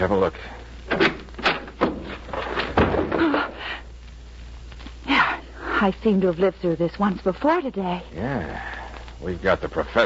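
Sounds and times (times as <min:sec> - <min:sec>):
speech: 0:00.0 - 0:01.0, 0:05.8 - 0:10.0
closet door opening: 0:00.9 - 0:03.4.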